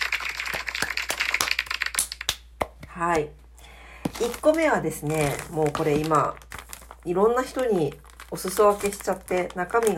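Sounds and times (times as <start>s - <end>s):
hand clapping: 0.0s - 3.0s
speech: 3.0s - 3.4s, 4.2s - 6.4s, 7.0s - 9.9s.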